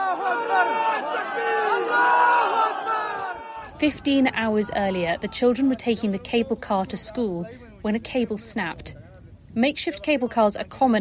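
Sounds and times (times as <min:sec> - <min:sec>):
crowd shouting God is great: 0:00.0 - 0:06.3
speech: 0:03.8 - 0:10.9.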